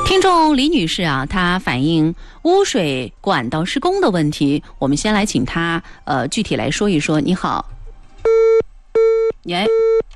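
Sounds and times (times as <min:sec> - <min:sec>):
speech: 0:00.2 - 0:08.6, 0:09.4 - 0:10.1
telephone busy tone after a caller hangs up on a call-in line: 0:08.3 - 0:10.0.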